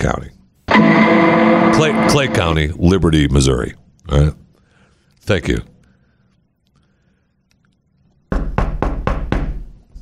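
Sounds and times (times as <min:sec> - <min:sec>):
speech: 0:00.0 - 0:04.4, 0:05.2 - 0:05.7
firm knocks on a door: 0:08.3 - 0:09.6.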